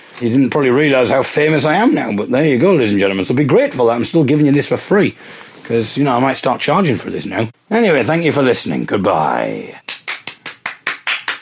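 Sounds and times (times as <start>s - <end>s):
speech: 0.2s - 10.0s
applause: 9.9s - 11.4s.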